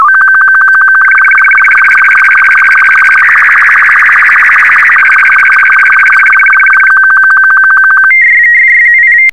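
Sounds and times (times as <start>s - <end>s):
SSTV signal: 0.0s - 9.3s.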